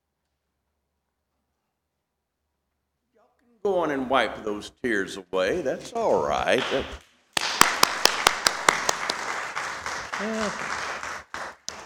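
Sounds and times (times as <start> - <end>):
speech: 3.5 - 7.0, 10.2 - 10.8
Presbyterians applauding: 6.6 - 11.8.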